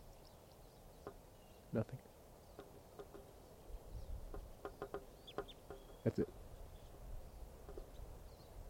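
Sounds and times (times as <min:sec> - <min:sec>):
lone type 2 crossbill calling kip notes: 0:00.2 - 0:08.5
speech: 0:01.1 - 0:02.7, 0:06.0 - 0:06.4.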